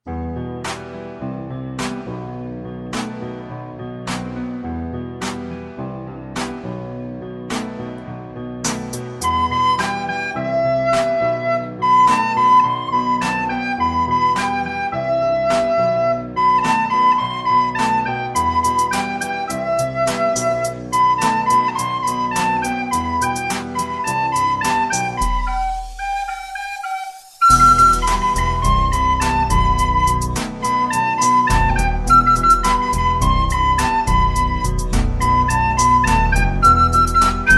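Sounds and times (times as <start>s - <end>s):
background track: 0.3s - 37.5s
recorder: 8.6s - 37.5s.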